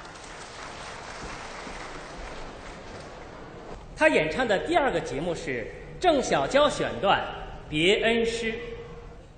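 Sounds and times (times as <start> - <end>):
audience applause: 0.0 - 3.7
speech: 4.0 - 8.7.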